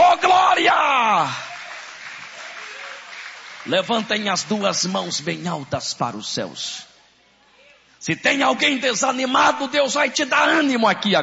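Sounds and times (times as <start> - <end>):
church congregation applauding during a Portuguese-language worship service: 0.0 - 5.7
speech: 3.7 - 6.9, 8.0 - 11.2.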